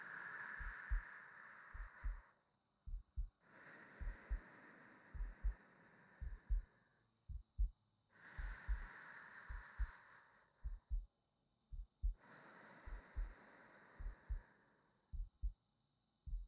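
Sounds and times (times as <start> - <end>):
sleeping breathing: 0.0 - 2.4, 3.4 - 7.0, 8.1 - 10.9, 12.1 - 15.0
new wife's heartbeat: 0.6 - 1.1, 1.7 - 3.4, 4.0 - 4.4, 5.1 - 5.6, 6.2 - 6.7, 7.3 - 7.8, 8.4 - 8.9, 9.5 - 10.0, 10.6 - 11.1, 11.7 - 12.2, 12.8 - 13.4, 14.0 - 14.5, 15.1 - 15.6, 16.2 - 16.4.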